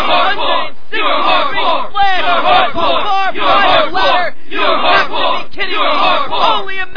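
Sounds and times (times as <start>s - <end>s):
wrestling crowd chanting at a WWA match in Madison Square Garden: 0.0s - 6.8s.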